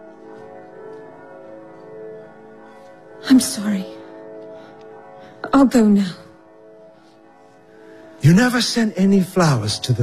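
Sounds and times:
bells ringing: 0.0s - 10.0s
speech: 3.2s - 4.0s, 5.5s - 6.2s, 8.3s - 10.0s.

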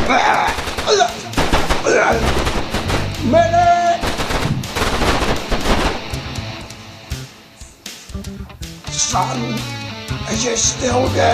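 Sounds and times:
video game automatic gunfire: 0.0s - 6.2s
speech: 0.1s - 1.2s, 3.2s - 3.8s, 9.1s - 11.3s.

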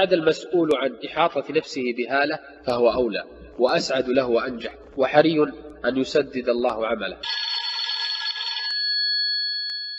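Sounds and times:
speech: 0.0s - 7.6s
telephone ringing: 7.2s - 9.9s.

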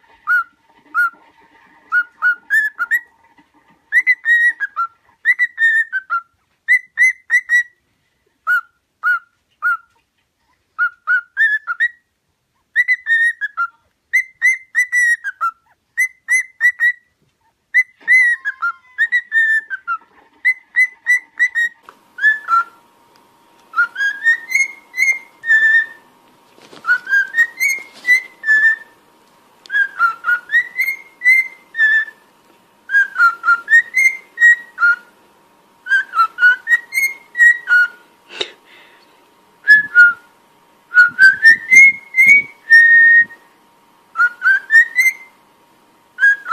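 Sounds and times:
cockatiel whistling: 0.2s - 1.2s, 1.9s - 3.1s, 3.9s - 7.8s, 8.5s - 9.9s, 10.8s - 12.0s, 12.8s - 17.1s, 17.7s - 22.8s, 23.7s - 26.1s, 26.8s - 29.0s, 29.7s - 32.2s, 32.9s - 35.1s, 35.8s - 38.0s, 39.6s - 40.3s, 40.9s - 43.4s, 44.1s - 45.4s, 46.2s - 46.5s.

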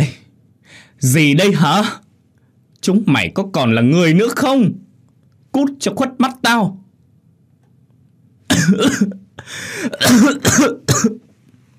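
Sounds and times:
speech: 1.0s - 2.0s, 2.8s - 4.8s, 5.6s - 6.8s, 8.5s - 11.2s
angry old man's coughing fit: 8.5s - 11.3s.

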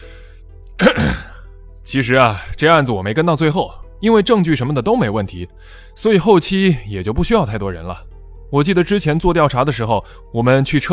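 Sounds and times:
throat clearing: 0.8s - 1.4s
speech: 1.9s - 10.9s.

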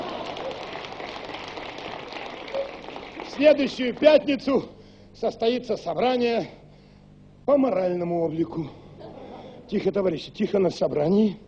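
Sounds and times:
audience clapping: 0.0s - 4.2s
speech: 3.4s - 6.6s, 7.5s - 8.8s, 9.7s - 11.4s.

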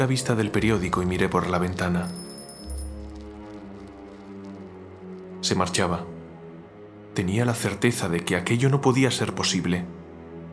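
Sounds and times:
speech: 0.0s - 2.2s, 5.4s - 6.1s, 7.2s - 10.0s
bicycle bell ringing: 2.0s - 3.3s.

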